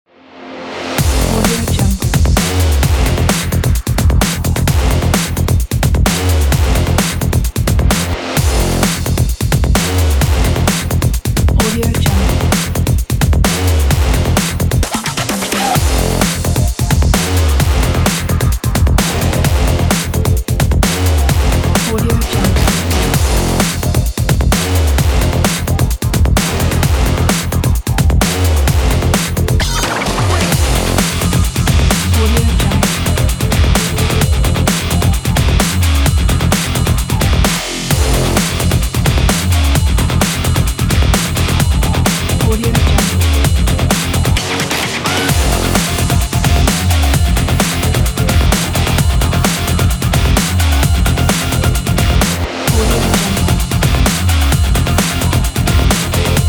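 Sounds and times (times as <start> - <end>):
breakbeat drums: 1.0 - 56.4.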